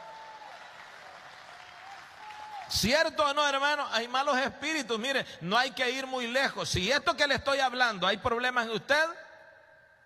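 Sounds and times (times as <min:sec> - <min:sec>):
church congregation clapping during a sermon: 0:00.0 - 0:03.3
speech: 0:02.7 - 0:09.2.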